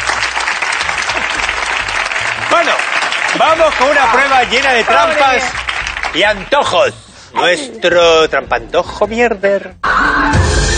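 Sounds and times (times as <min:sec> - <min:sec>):
audience applause: 0:00.0 - 0:06.7
speech: 0:03.4 - 0:10.4.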